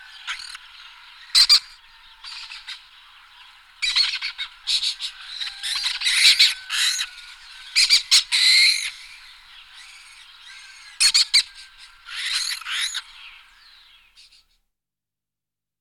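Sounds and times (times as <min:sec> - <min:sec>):
lesser kestrel chattering calls: 0:00.0 - 0:02.8, 0:03.8 - 0:13.4.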